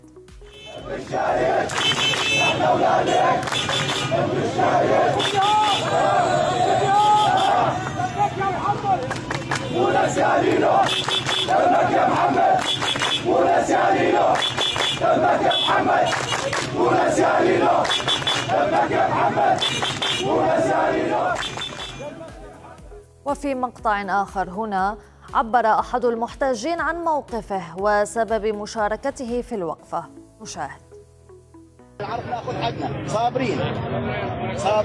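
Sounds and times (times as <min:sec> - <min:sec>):
protesters chanting slogans at a vigil outside a Syrian revolution martyr's home: 0:00.6 - 0:22.8
speech: 0:02.6 - 0:06.4, 0:09.8 - 0:21.5, 0:23.3 - 0:30.8, 0:32.0 - 0:34.8.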